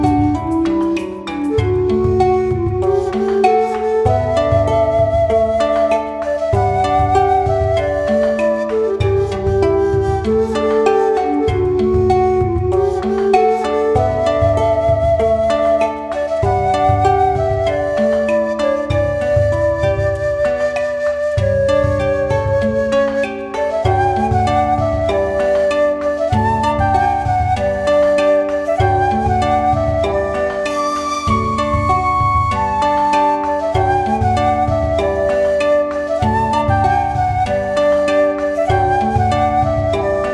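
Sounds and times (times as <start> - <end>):
koto playing Japanese style music: 0.0 - 40.3.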